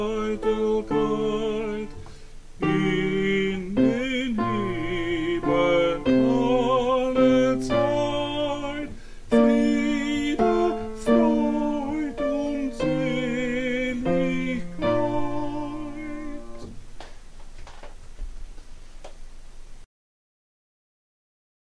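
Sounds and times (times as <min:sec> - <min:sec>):
tenor singing a closing chorale: 0:00.0 - 0:16.8.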